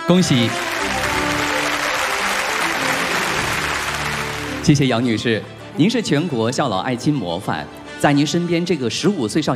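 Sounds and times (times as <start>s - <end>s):
speech: 0.1s - 0.8s, 4.7s - 9.5s
audience clapping at an honors ceremony: 0.2s - 4.9s.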